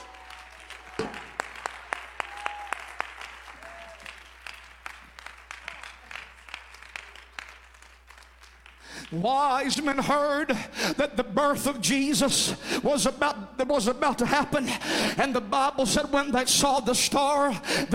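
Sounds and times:
audience clapping: 0.0 - 9.8
speech: 9.1 - 17.9.

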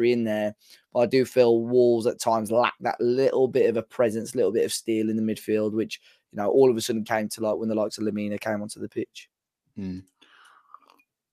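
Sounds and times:
speech: 0.0 - 10.2
person sipping tea: 9.8 - 11.0.

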